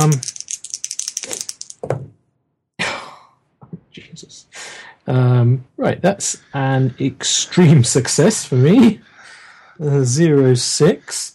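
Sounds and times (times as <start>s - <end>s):
speech: 0.0s - 0.3s, 5.1s - 9.1s, 9.8s - 11.3s
dice being rolled: 0.0s - 2.0s.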